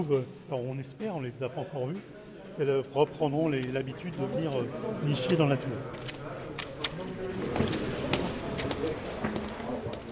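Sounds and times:
speech: 0.0 - 6.2
footsteps climbing the narrow stairs of a tower: 6.0 - 10.1.

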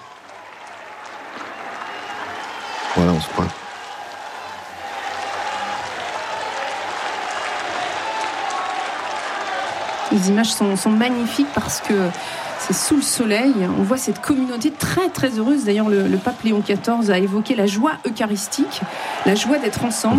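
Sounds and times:
crowd cheering: 0.0 - 20.1
speech: 2.9 - 3.6, 10.1 - 20.1.

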